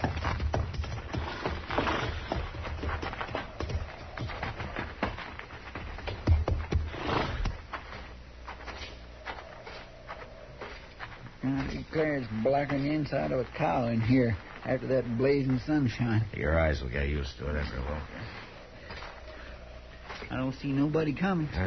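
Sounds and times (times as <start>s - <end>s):
horses' hooves on wooden floor being led into stalls: 0.0s - 16.0s
speech: 12.0s - 18.2s, 20.4s - 21.6s.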